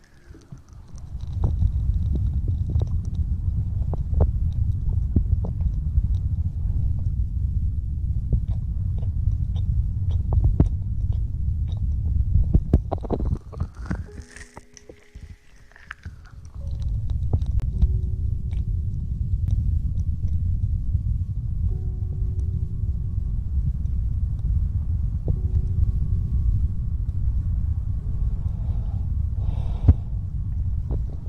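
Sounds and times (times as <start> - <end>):
dense steady low rumble: 0.0 - 31.2
hand sounds and movements: 12.9 - 16.9
mouth sounds: 13.1 - 16.7.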